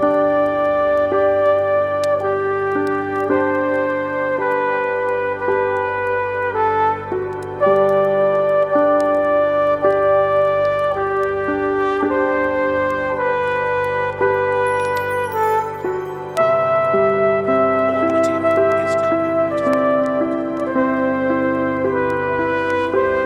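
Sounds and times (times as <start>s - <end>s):
relaxing Christmas on-hold music: 0.0s - 23.2s.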